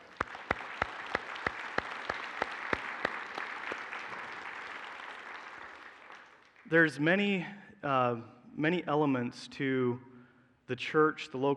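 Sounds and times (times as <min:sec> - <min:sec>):
audience applause: 0:00.0 - 0:06.6
speech: 0:06.7 - 0:10.1, 0:10.7 - 0:11.5.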